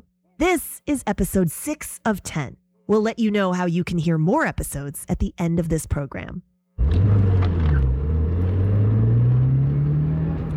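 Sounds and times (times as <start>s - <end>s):
speech: 0.4s - 6.5s
car engine roaring as it accelerates: 6.8s - 10.5s.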